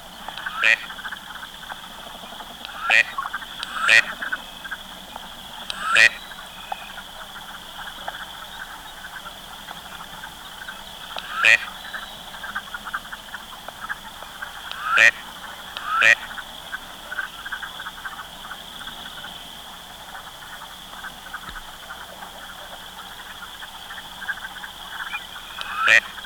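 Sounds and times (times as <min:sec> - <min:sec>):
Gadwall: 0:00.3 - 0:01.0, 0:02.7 - 0:04.5, 0:05.7 - 0:07.0, 0:11.2 - 0:11.7, 0:13.9 - 0:16.3, 0:24.9 - 0:26.2.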